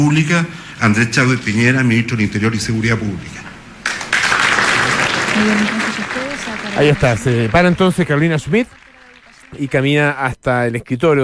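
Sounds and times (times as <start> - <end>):
speech: 0.0 - 3.4, 5.4 - 5.8, 6.8 - 8.8, 9.5 - 11.2
applause for Chilean President Sebastián Piñera at a decree-signing ceremony: 3.8 - 10.2.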